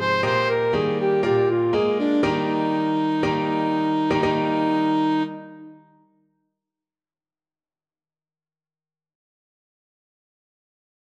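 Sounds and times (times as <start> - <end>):
saxophone playing a classical romance: 0.0 - 5.9.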